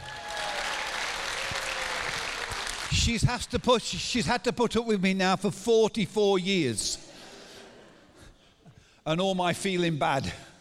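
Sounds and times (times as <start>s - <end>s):
audience applause: 0.0s - 3.1s
speech: 3.0s - 7.0s, 9.0s - 10.5s.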